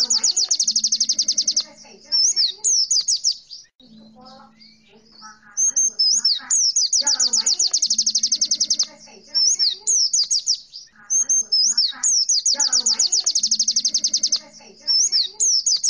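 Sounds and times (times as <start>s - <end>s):
white-eye chirping and warbling: 0.0s - 15.8s.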